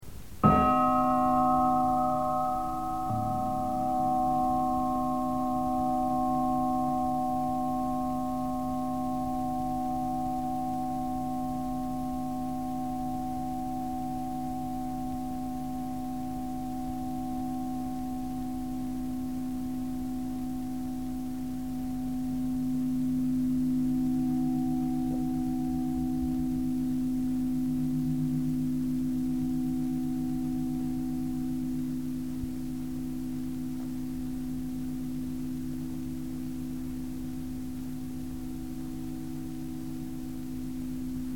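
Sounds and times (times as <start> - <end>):
gong: 0.4 - 41.3.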